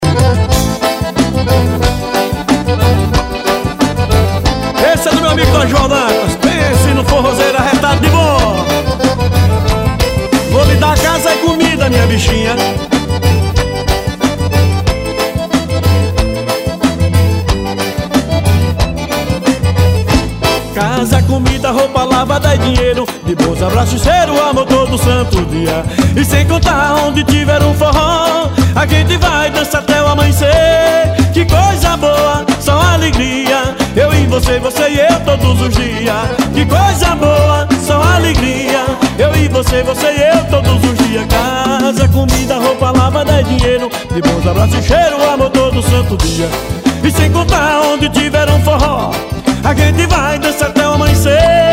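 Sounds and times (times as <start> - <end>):
accordion: 0.0 - 51.7.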